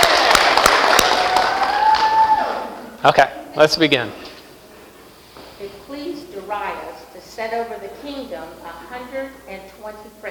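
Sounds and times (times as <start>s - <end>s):
audience applause: 0.0s - 2.8s
speech: 3.0s - 4.2s, 5.6s - 10.3s.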